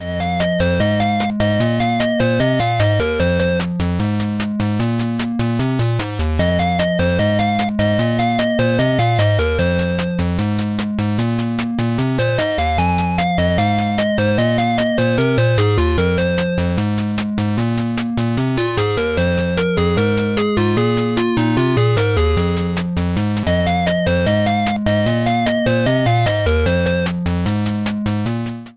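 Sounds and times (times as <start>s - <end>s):
retro electro music: 0.0s - 28.7s.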